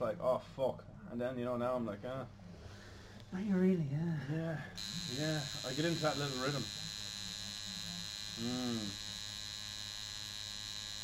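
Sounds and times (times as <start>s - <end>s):
speech: 0.0s - 2.4s, 3.3s - 6.8s, 8.4s - 9.0s
tattoo machine needle buzzing during a tattoo session: 4.8s - 11.0s.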